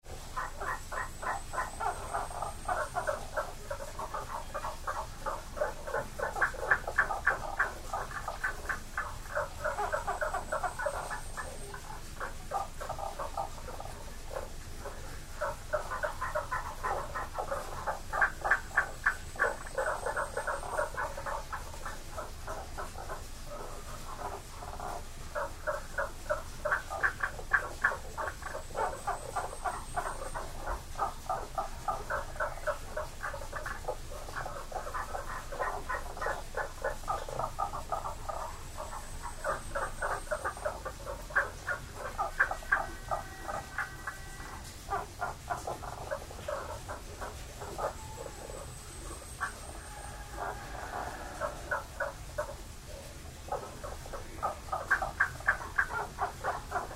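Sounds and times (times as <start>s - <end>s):
frogs croaking in a shrine: 0.0s - 56.9s.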